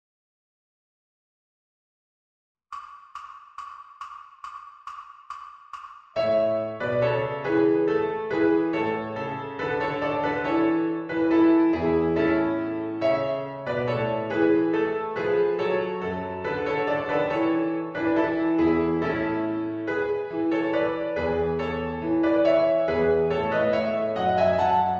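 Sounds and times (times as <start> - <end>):
Christmas piano music: 6.2 - 24.9.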